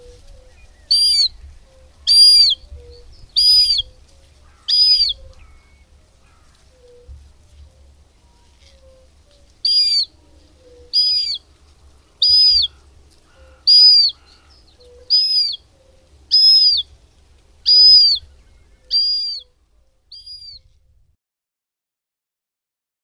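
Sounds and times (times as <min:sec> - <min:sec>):
Western marsh harrier calling: 0:00.0 - 0:07.0, 0:07.8 - 0:16.9, 0:17.6 - 0:19.5.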